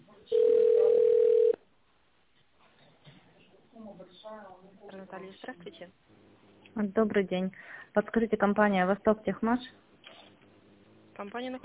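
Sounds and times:
telephone ringback while waiting for operator: 0.3s - 1.6s
speech: 4.3s - 9.8s, 11.2s - 11.6s.

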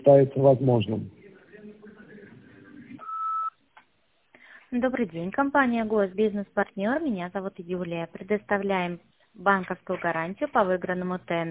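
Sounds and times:
speech: 0.0s - 1.2s, 4.7s - 11.4s
voicemail beep over a telephone line: 3.0s - 3.6s.

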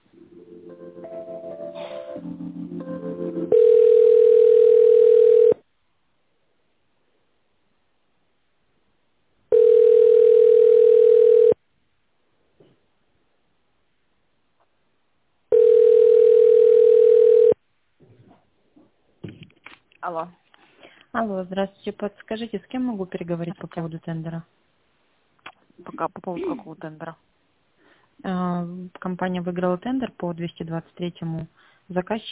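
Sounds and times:
phone line ringing tone while waiting for operator: 3.1s - 5.6s, 9.5s - 11.6s, 15.5s - 17.6s
speech: 20.1s - 20.4s, 21.2s - 24.6s, 25.8s - 27.3s, 28.2s - 32.3s.

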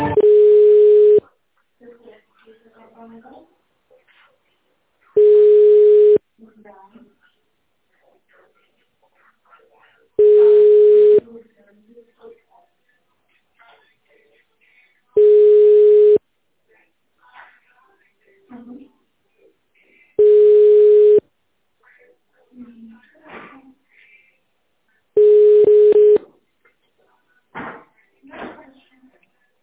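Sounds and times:
telephone line tone beeps while a call is transferred to a specialist: 0.2s - 1.2s, 5.2s - 6.2s, 10.2s - 11.2s, 15.2s - 16.2s, 20.2s - 21.2s, 25.2s - 26.2s.

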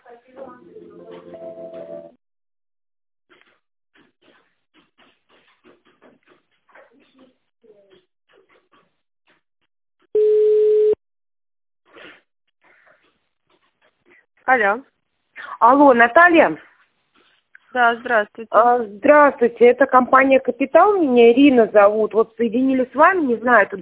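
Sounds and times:
telephone line tone during call transfer: 10.2s - 11.0s
speech: 14.5s - 14.9s, 15.6s - 16.7s, 17.8s - 23.7s.

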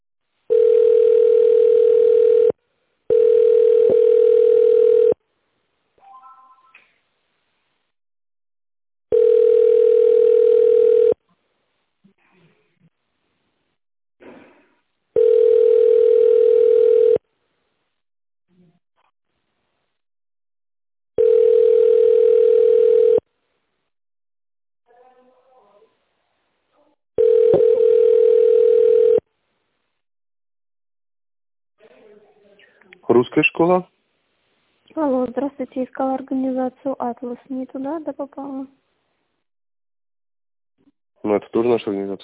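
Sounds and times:
telephone ringback tone while on hold: 0.5s - 5.2s, 9.1s - 11.2s, 15.2s - 17.2s, 21.2s - 23.2s, 27.2s - 29.2s
speech: 33.6s - 33.9s, 35.4s - 38.8s, 41.3s - 42.2s.

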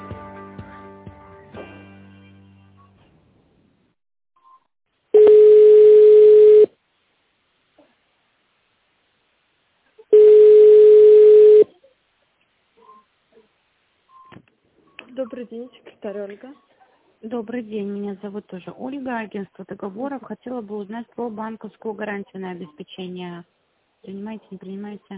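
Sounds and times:
telephone ringback tone: 5.2s - 6.7s, 10.2s - 11.7s
speech: 15.4s - 25.1s.

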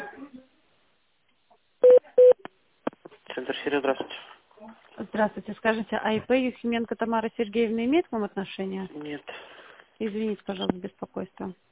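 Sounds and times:
touch-tone telephone dialing beeps: 1.9s - 2.4s
speech: 5.3s - 11.7s.

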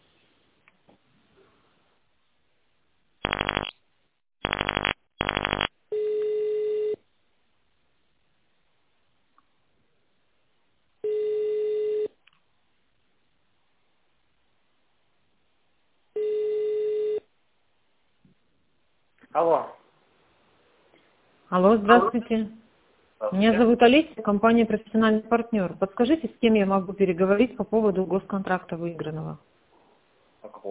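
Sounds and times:
dialing tones: 3.2s - 3.7s, 4.4s - 7.0s, 11.0s - 12.1s, 16.2s - 17.2s
telephone ringback tone: 4.5s - 7.0s, 11.0s - 12.1s, 16.2s - 17.2s
speech: 19.4s - 19.8s, 21.5s - 22.6s, 23.2s - 29.5s.

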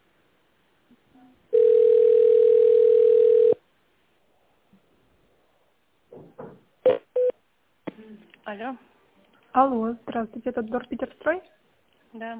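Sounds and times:
steady loud telephone tone: 1.5s - 3.6s
speech: 8.5s - 8.9s, 9.5s - 12.3s.

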